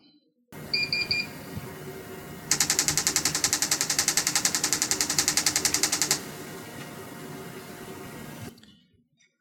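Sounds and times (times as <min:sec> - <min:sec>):
low electrical hum: 0:00.6 - 0:08.7
TMS brain stimulator rapid pulse clicking: 0:02.5 - 0:07.0.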